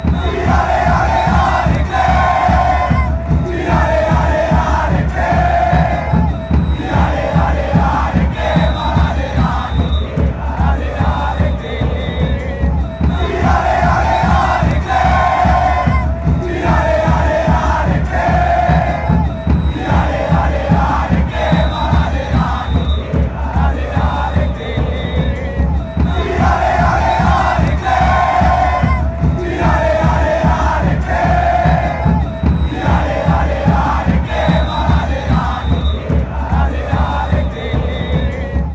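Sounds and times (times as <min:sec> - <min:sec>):
Argentine fans chanting: 0:00.0 - 0:38.7.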